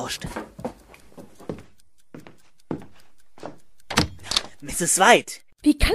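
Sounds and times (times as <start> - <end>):
speech: 0.1 - 0.4, 4.7 - 5.9
door opened with soft thuds and rattling knocks: 3.9 - 4.5
door banging: 3.9 - 4.6.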